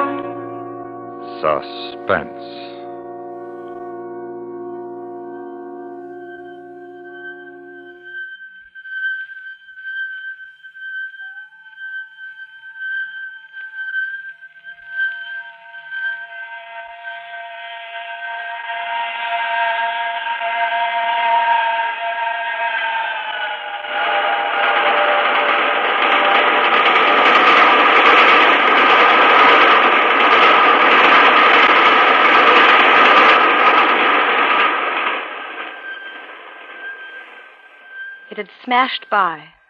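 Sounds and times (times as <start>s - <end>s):
roaring rush of the passing train: 0.0s - 8.1s, 17.4s - 39.4s
train steam whistle shrieking: 0.0s - 39.6s
speech: 1.4s - 2.7s, 38.7s - 39.5s.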